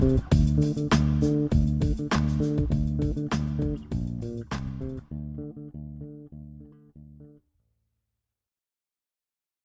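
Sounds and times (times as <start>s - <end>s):
funk disco bass: 0.0s - 7.3s.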